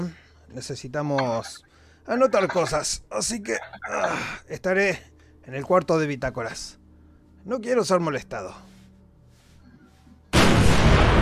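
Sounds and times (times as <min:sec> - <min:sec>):
speech: 0:00.0 - 0:06.8, 0:07.4 - 0:08.7
accidental gunshot in the video game Barotrauma: 0:10.3 - 0:11.2.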